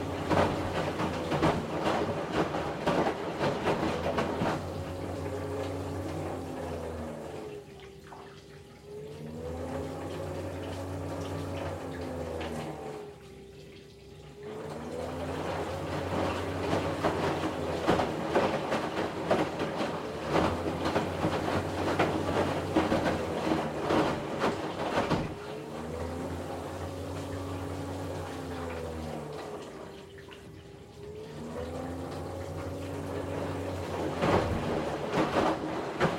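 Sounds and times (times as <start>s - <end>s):
front load washing machine running a wash: 0.0s - 36.1s.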